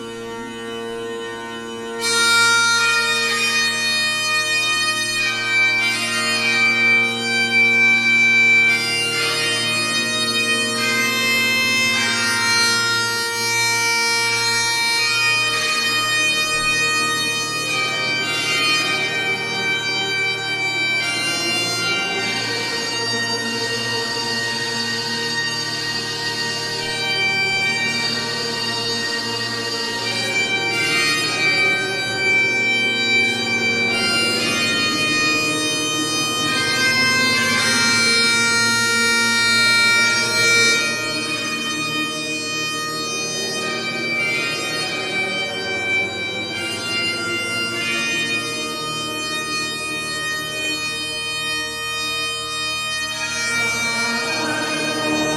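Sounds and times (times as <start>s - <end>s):
anamnesis liturgical music: 0.0s - 55.3s.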